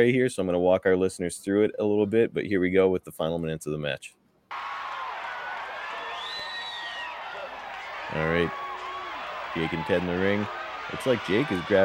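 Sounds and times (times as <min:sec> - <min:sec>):
speech: 0:00.0 - 0:04.7, 0:08.1 - 0:08.6, 0:09.5 - 0:11.8
wrestling crowd cheering: 0:04.5 - 0:11.8.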